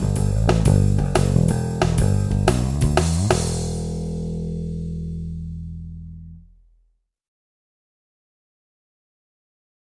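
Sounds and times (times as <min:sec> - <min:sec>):
bass: 0:00.0 - 0:07.0.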